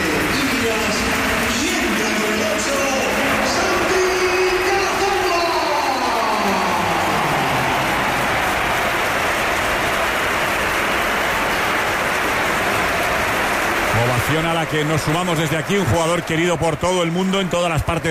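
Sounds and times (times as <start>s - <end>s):
Santiago Bernabéu stadium crowd ovation for an Oviedo player: 0.0s - 18.0s
speech: 14.6s - 18.0s.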